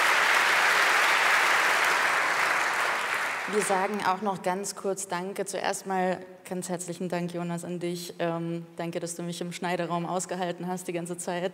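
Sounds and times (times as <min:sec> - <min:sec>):
audience applause: 0:00.0 - 0:04.0
speech: 0:03.5 - 0:11.5.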